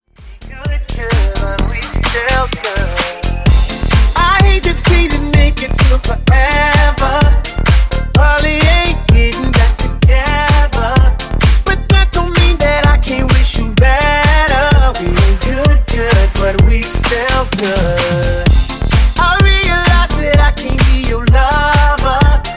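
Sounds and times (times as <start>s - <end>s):
funk bootleg remix at 128 bpm: 0.0s - 22.5s.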